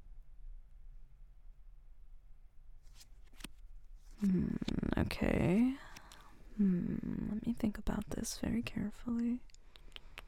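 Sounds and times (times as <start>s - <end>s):
playing cards shuffling: 2.8s - 4.9s, 5.6s - 6.4s
playing cards being dealt: 2.8s - 6.3s
speech: 4.2s - 5.8s, 6.6s - 9.5s.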